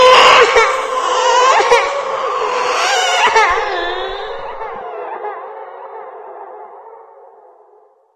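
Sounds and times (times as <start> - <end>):
person crying: 0.1 - 4.8.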